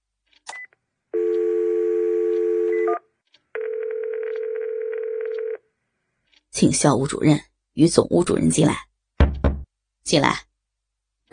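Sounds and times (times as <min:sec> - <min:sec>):
telephone dial tone: 0:01.2 - 0:03.0, 0:03.6 - 0:05.6
speech: 0:06.6 - 0:08.9, 0:10.1 - 0:10.5.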